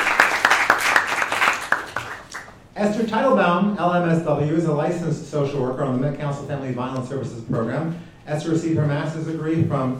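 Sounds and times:
audience applause: 0:00.0 - 0:02.5
speech: 0:02.8 - 0:09.9.

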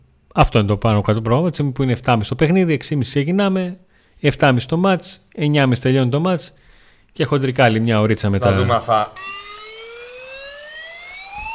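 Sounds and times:
speech: 0:00.4 - 0:09.4
siren: 0:09.1 - 0:11.5.

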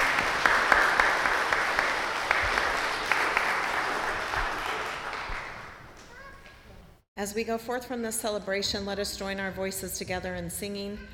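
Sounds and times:
audience applauding for children: 0:00.0 - 0:06.6
speech: 0:07.2 - 0:11.1.

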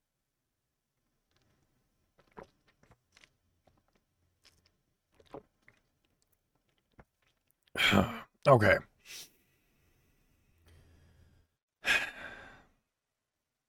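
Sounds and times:
person gulping water: 0:01.3 - 0:08.3
wet mouth clicks: 0:02.2 - 0:07.7
speech: 0:07.9 - 0:09.3.

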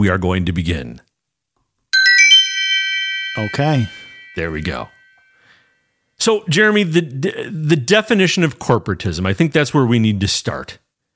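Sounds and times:
speech: 0:00.0 - 0:01.1, 0:03.4 - 0:05.0, 0:06.2 - 0:10.8
recording start electronic chime: 0:02.0 - 0:05.2.

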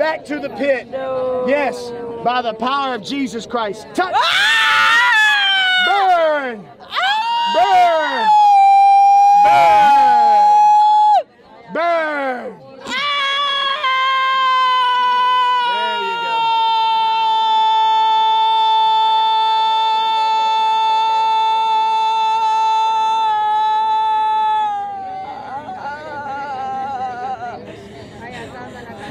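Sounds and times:
speech: 0:00.1 - 0:04.9, 0:07.5 - 0:08.4
long anguished human scream: 0:04.2 - 0:06.0, 0:06.9 - 0:11.2, 0:12.8 - 0:25.9.

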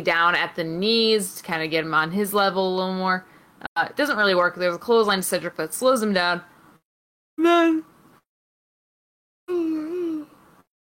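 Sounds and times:
speech: 0:00.0 - 0:06.5, 0:07.4 - 0:07.9
person yawning: 0:09.5 - 0:10.3.

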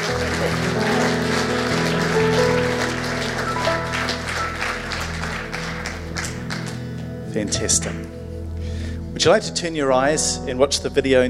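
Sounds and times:
audience clapping: 0:00.0 - 0:07.1
speech: 0:07.4 - 0:08.2, 0:09.2 - 0:11.2.

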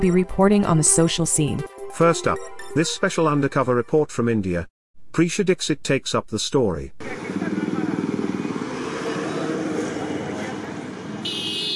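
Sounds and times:
speech: 0:00.0 - 0:07.4
motorbike rumble: 0:07.0 - 0:11.6
busy street traffic engine noise: 0:07.0 - 0:11.7
shrill horn-like blare: 0:11.2 - 0:11.7.

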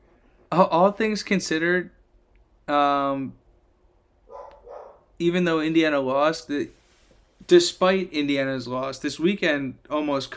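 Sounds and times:
speech: 0:00.5 - 0:02.0, 0:02.7 - 0:03.4, 0:05.2 - 0:06.8, 0:07.5 - 0:10.3
dog barking: 0:04.3 - 0:05.1.

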